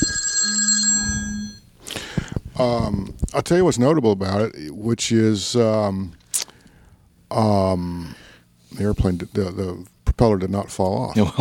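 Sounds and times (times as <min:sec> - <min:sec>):
telephone bell ringing: 0:00.0 - 0:01.7
speech: 0:02.6 - 0:06.2, 0:07.3 - 0:11.3.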